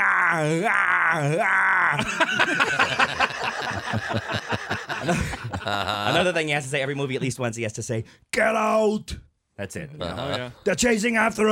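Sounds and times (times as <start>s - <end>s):
man imitating an action-movie pain yell: 0.0s - 2.1s
speech: 0.3s - 11.5s
laughter: 1.8s - 7.3s, 10.0s - 10.6s.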